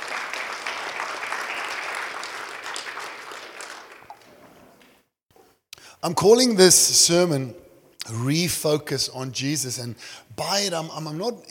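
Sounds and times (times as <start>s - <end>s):
crowd applause: 0.0s - 4.9s
speech: 6.0s - 11.4s.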